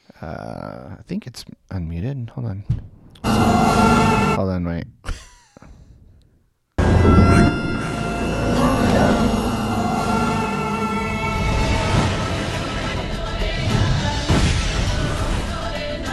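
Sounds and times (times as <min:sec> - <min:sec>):
speech: 0:00.2 - 0:04.9
TV show theme song: 0:03.2 - 0:04.4, 0:06.8 - 0:16.1.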